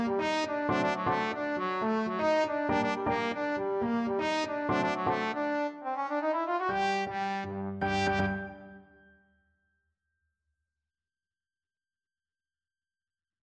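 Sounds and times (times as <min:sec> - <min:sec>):
trombone: 0:00.0 - 0:08.8.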